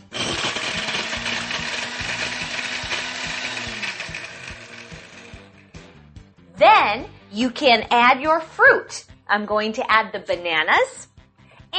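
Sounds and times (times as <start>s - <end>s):
blender crushing ice: 0.0s - 5.7s
speech: 6.6s - 11.1s.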